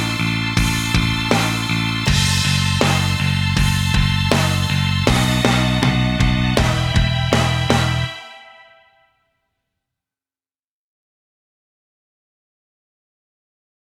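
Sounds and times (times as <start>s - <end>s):
karaoke singing: 0.0s - 8.7s.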